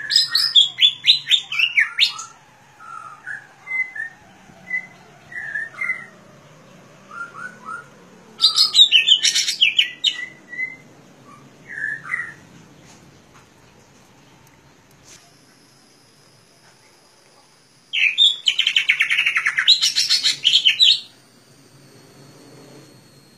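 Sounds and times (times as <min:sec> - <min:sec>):
leafbird singing chirping warbled notes: 0:00.0 - 0:12.5, 0:17.9 - 0:21.6.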